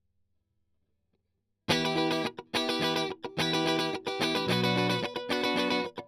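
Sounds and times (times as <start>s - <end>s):
strings strummed: 1.7s - 5.9s.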